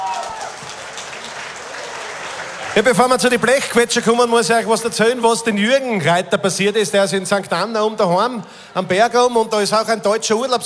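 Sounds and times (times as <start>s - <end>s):
audience applause for a folk music group: 0.0s - 3.7s
speech: 2.8s - 10.6s.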